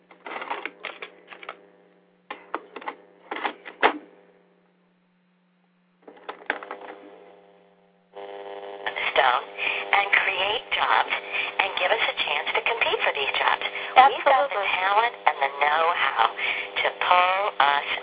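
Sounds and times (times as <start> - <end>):
steady low mains hum: 0.0 - 18.0
cassette tape being turned over in a recorder: 0.1 - 1.6, 2.3 - 4.1, 6.0 - 7.1.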